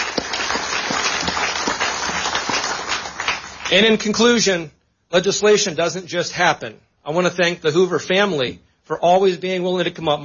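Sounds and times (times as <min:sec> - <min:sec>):
audience applause: 0:00.0 - 0:03.8
speech: 0:03.7 - 0:10.2.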